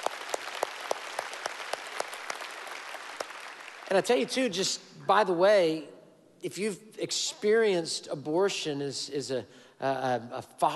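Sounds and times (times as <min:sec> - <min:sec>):
audience applause: 0:00.0 - 0:04.0
rhythmic sharp claps: 0:00.0 - 0:04.0
speech: 0:03.9 - 0:10.7.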